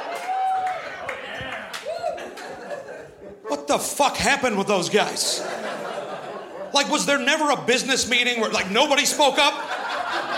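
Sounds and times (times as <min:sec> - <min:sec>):
audience applause: 0:00.0 - 0:02.6
laughter: 0:00.9 - 0:07.3, 0:09.0 - 0:10.3
speech: 0:03.7 - 0:05.8, 0:06.7 - 0:09.8.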